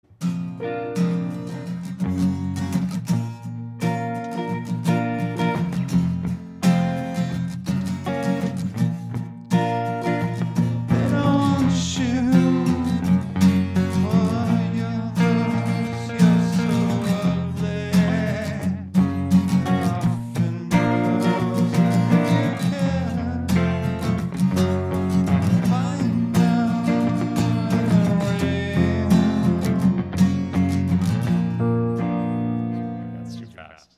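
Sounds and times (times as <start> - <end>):
acoustic music: 0.0 - 33.8.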